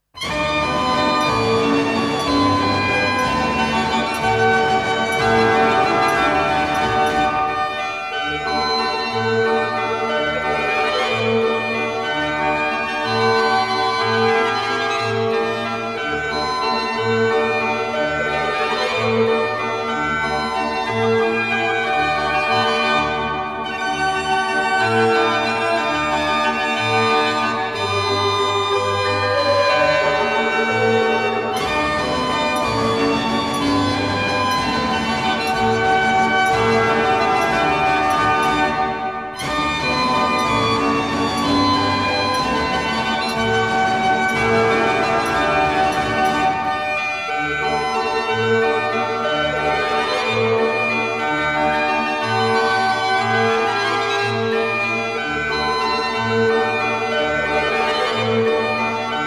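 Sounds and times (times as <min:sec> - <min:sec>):
Dutch street barrel organ playing: 0:00.2 - 0:59.2.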